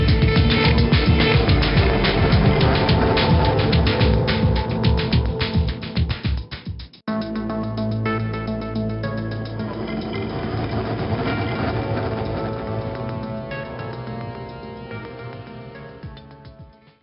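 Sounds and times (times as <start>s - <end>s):
background music: 0.0s - 17.0s.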